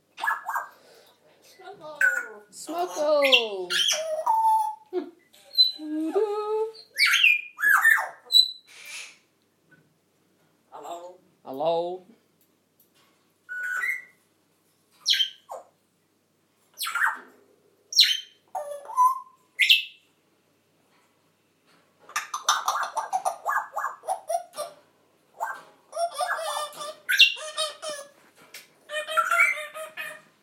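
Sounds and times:
parrots squawking: 0:00.2 - 0:01.0, 0:01.8 - 0:05.8, 0:06.7 - 0:09.3, 0:13.5 - 0:14.2, 0:15.0 - 0:15.8, 0:16.8 - 0:17.3, 0:17.9 - 0:20.0, 0:22.1 - 0:28.2, 0:28.9 - 0:30.4
speech: 0:02.6 - 0:04.0.

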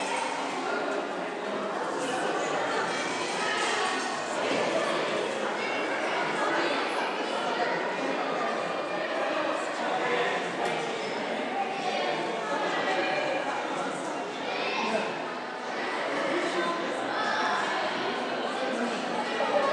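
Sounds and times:
museum lobby ambience: 0:00.0 - 0:19.7.

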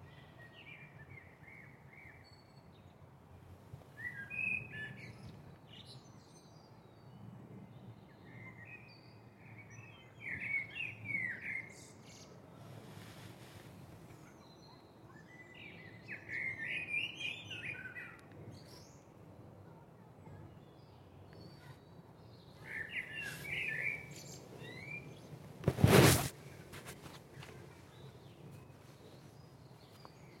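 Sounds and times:
birdsong in a garden: 0:04.0 - 0:12.4, 0:14.1 - 0:19.1, 0:20.3 - 0:30.3.

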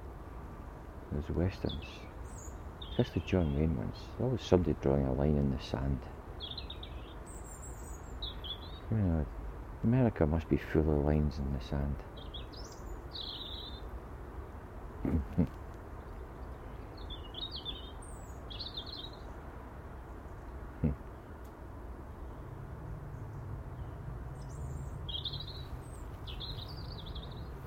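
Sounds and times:
speech: 0:01.1 - 0:02.1, 0:03.0 - 0:06.6, 0:08.9 - 0:12.1, 0:15.0 - 0:15.6
small bird tweeting: 0:01.6 - 0:03.8, 0:06.4 - 0:08.9, 0:12.2 - 0:13.9, 0:15.0 - 0:19.4, 0:23.1 - 0:27.6.

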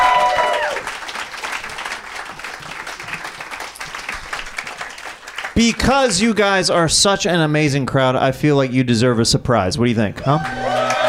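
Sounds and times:
crowd applause for a comedian at a comedy show: 0:00.0 - 0:06.4, 0:10.3 - 0:11.0
speech: 0:05.6 - 0:10.7.

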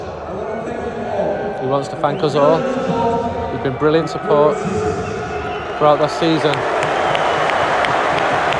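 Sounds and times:
stadium crowd cheering: 0:00.0 - 0:08.5
speech: 0:01.6 - 0:05.0, 0:05.8 - 0:06.7
large stadium crowd clapping: 0:05.8 - 0:08.5.

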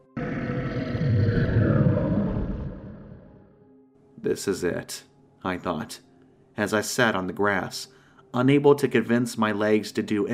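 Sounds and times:
creature's stomach-churning howl: 0:00.0 - 0:03.6
speech: 0:04.3 - 0:10.3.

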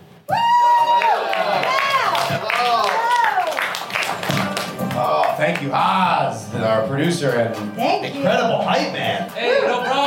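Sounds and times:
audience applause: 0:00.6 - 0:05.8
speech: 0:05.5 - 0:10.0.

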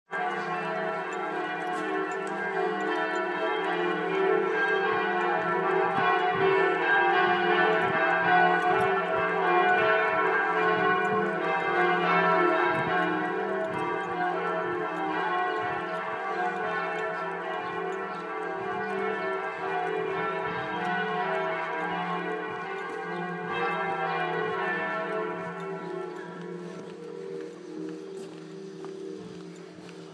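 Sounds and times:
bells ringing: 0:00.1 - 0:30.1.

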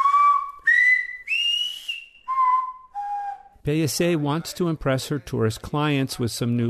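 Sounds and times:
whistled vowels of silbo practised in a lesson in San Sebastian: 0:00.0 - 0:03.6
speech: 0:03.6 - 0:06.6.

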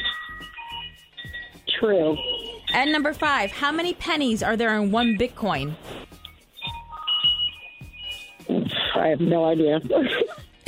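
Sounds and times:
wind chime ringing: 0:00.0 - 0:03.2, 0:06.2 - 0:08.4
speech: 0:01.8 - 0:06.0, 0:09.0 - 0:10.6.

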